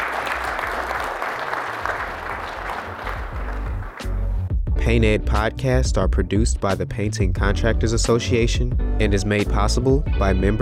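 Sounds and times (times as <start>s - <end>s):
audience round of applause: 0.0s - 4.4s
speech: 4.9s - 10.6s.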